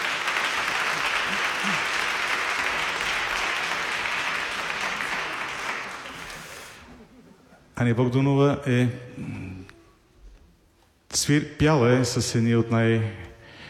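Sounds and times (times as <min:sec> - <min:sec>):
audience applause: 0:00.0 - 0:06.9
speech: 0:07.8 - 0:09.6, 0:11.2 - 0:13.3.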